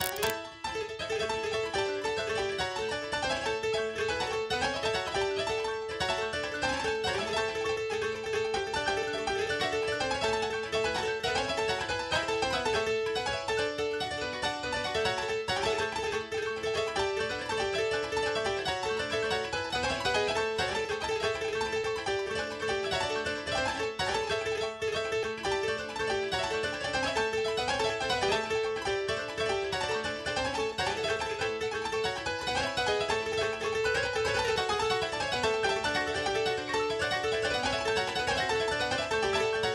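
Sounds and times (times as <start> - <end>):
banjo: 1.0 - 39.7.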